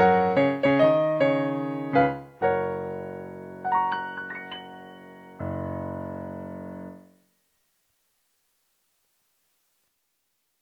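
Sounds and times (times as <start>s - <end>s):
music medley practice: 0.0s - 5.8s.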